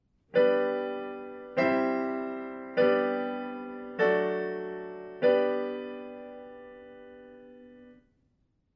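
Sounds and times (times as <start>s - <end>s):
I IV I V I chord progression in G major: 0.4s - 7.9s.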